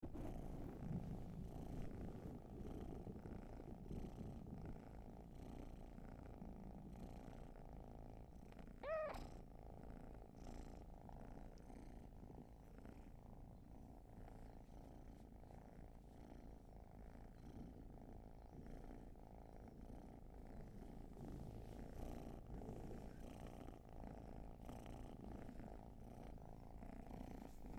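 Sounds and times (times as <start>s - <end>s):
cat purring: 0.0s - 27.7s
cat meow-like chirp: 8.8s - 9.3s.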